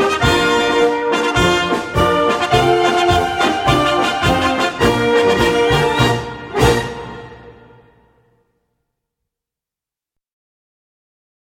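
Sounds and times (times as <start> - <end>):
march music: 0.0 - 8.4.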